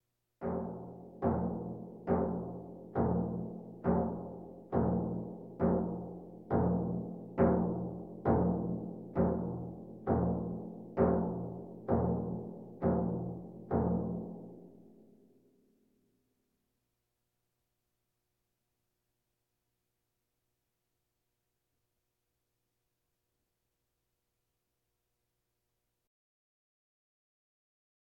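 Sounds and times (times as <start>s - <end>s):
bongos: 0.4s - 14.6s
drums: 0.4s - 14.7s.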